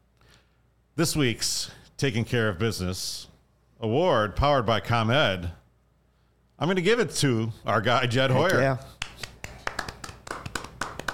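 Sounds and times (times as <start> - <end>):
speech: 1.0 - 5.6, 6.6 - 9.0
golf clap: 8.4 - 11.1.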